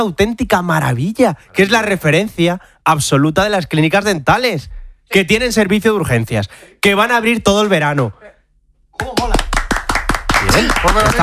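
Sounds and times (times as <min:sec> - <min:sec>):
speech: 0:00.0 - 0:08.3, 0:09.0 - 0:09.4, 0:10.6 - 0:11.2
audience applause: 0:09.1 - 0:11.2.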